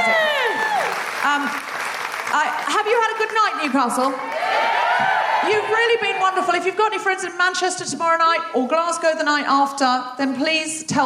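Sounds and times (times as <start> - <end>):
live audience applause: 0.0 - 6.2
speech: 1.3 - 1.7, 2.3 - 11.0.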